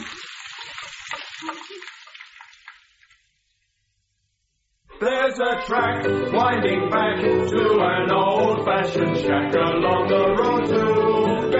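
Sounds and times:
bacon frying in a pan: 0.0 - 3.8
speech: 0.8 - 2.0, 5.0 - 11.5.

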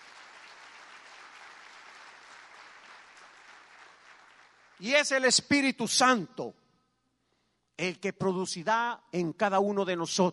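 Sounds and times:
audience applause: 0.0 - 4.8
speech: 4.8 - 6.6, 7.8 - 10.3.

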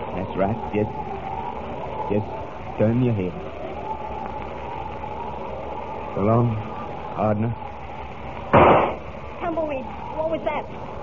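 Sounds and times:
speech: 0.4 - 1.1, 2.1 - 3.5, 6.2 - 7.6, 9.5 - 11.0
gunshot: 8.5 - 9.0.

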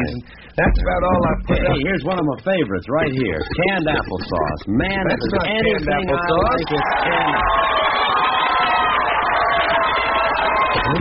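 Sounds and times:
speech: 0.1 - 8.1
canned applause track: 6.2 - 10.9.

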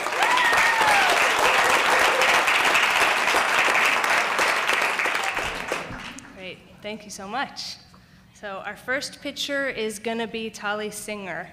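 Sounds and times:
whoops: 0.0 - 2.5
people applauding: 0.0 - 6.4
speech: 6.9 - 7.8, 8.4 - 11.5.

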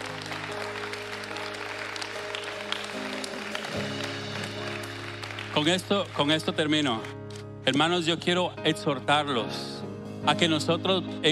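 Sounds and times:
audience applause: 0.0 - 7.1
speech: 5.6 - 11.3.

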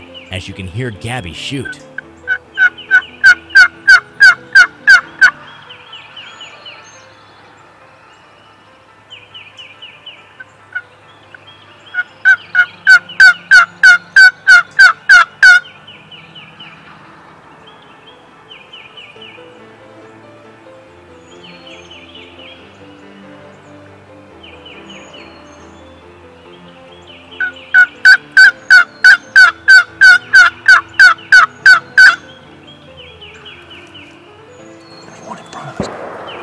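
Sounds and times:
speech: 0.3 - 1.9
two wild turkey gobblers gobbling on the roost: 1.6 - 5.5, 11.9 - 15.7, 27.4 - 32.3.

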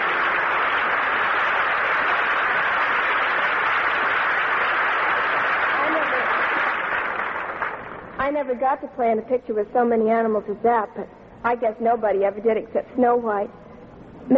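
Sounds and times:
audience applause: 0.0 - 8.2
speech: 8.3 - 13.6.

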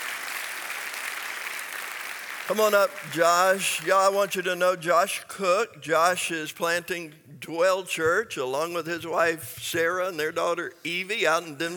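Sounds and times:
audience applause: 0.0 - 3.9
speech: 2.5 - 11.7.

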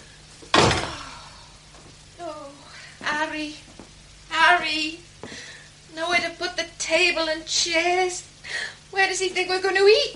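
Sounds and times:
door being shut: 0.5 - 1.0
speech: 3.4 - 3.7, 4.4 - 5.4, 6.0 - 10.1.

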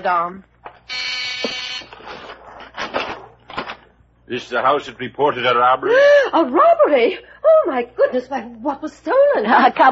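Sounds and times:
speech: 0.0 - 1.6, 4.3 - 9.8
doorbell buzzer at front door: 0.9 - 2.0.

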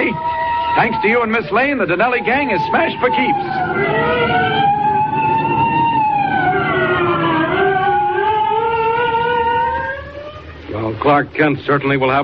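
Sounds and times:
police siren of arriving state troopers wailing: 0.0 - 10.7
speech: 0.1 - 4.4, 11.0 - 12.2.

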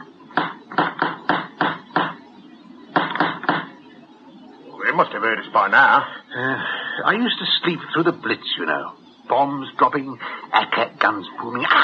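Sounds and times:
knocking on a door: 0.4 - 2.2, 2.9 - 3.7
speech: 5.0 - 11.8.

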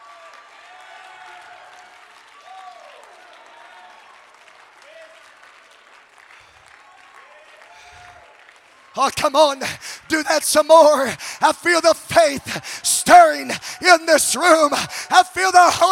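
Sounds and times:
audience clapping: 0.0 - 15.8
audience shouting: 9.0 - 15.8
speech: 9.0 - 15.8.

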